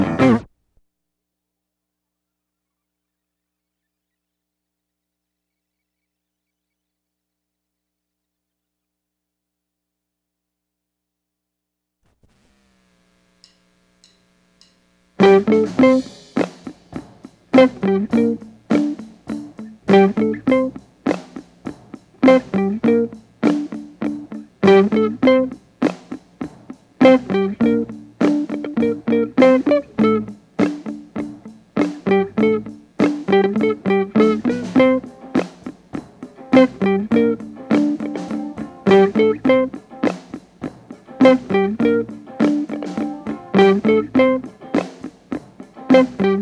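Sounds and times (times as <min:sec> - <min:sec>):
guitar: 0:00.0 - 0:00.5, 0:15.1 - 0:46.4.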